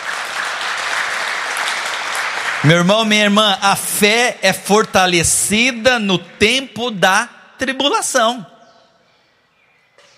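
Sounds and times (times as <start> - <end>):
crowd clapping: 0.0 - 3.6
speech: 2.6 - 8.5.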